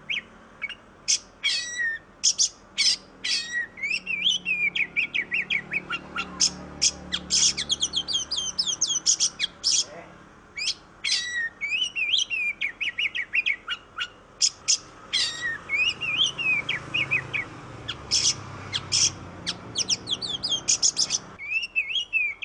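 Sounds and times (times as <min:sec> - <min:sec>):
Oriental magpie-robin in sustained song: 0:00.0 - 0:22.4.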